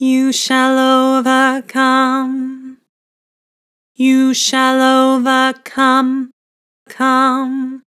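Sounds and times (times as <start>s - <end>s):
person singing with vibrato: 0.0s - 2.8s, 4.0s - 6.3s, 6.9s - 7.9s.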